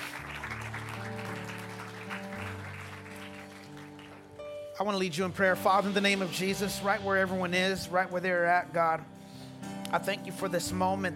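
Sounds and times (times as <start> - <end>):
audience clapping hands: 0.0 - 4.6
speech: 4.8 - 9.2, 9.9 - 11.1.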